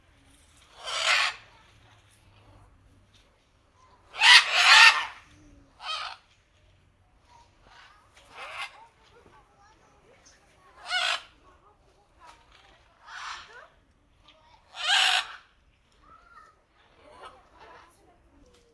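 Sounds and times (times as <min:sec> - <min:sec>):
macaw squawks: 0:00.7 - 0:01.6, 0:04.0 - 0:06.3, 0:07.6 - 0:09.0, 0:10.7 - 0:11.4, 0:12.9 - 0:13.8, 0:14.6 - 0:15.5.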